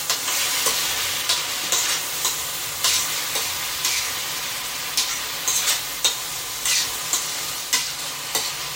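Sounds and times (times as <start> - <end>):
meat searing and being stirred in pot: 0.0 - 8.7.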